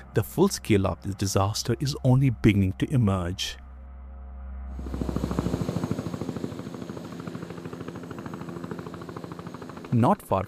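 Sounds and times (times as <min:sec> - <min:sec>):
speech: 0:00.2 - 0:03.6, 0:09.9 - 0:10.4
helicopter rotor chopping with deep engine whine: 0:04.8 - 0:10.4.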